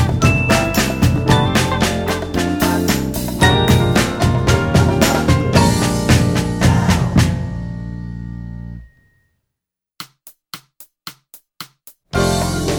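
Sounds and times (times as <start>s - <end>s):
percussion: 0.0s - 7.6s, 10.0s - 12.7s.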